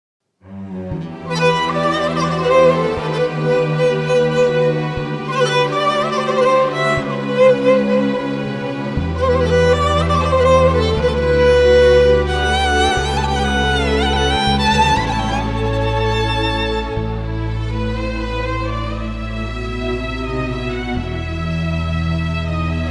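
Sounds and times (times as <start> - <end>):
violin melody: 0.5 - 22.8.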